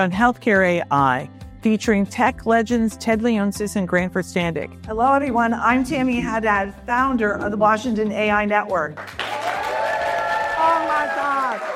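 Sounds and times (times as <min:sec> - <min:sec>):
speech: 0:00.0 - 0:09.2
audience applause at a live awards event: 0:08.9 - 0:11.7
audience cheering at a live awards event: 0:09.2 - 0:11.7.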